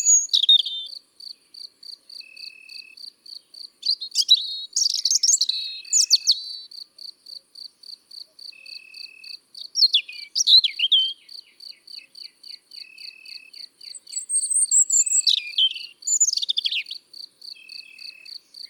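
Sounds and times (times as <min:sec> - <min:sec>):
European robin singing in the countryside: 0:00.0 - 0:01.0, 0:03.8 - 0:06.7, 0:08.5 - 0:18.6.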